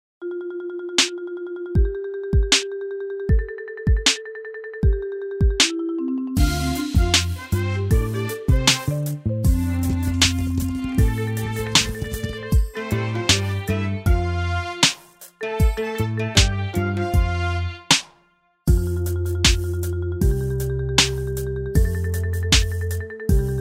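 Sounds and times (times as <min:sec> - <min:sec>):
instrumental music: 0:00.3 - 0:23.5.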